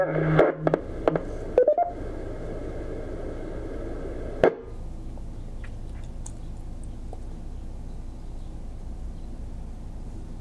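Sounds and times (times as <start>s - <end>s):
radio hiss: 0.0s - 4.8s
electronic beep tones over a radio channel: 1.6s - 2.0s.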